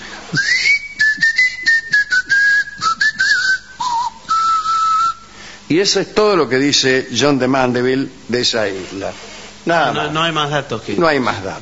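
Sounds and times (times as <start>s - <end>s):
speech: 0.3s - 0.6s, 5.7s - 11.5s
person whistling to communicate: 0.3s - 5.4s.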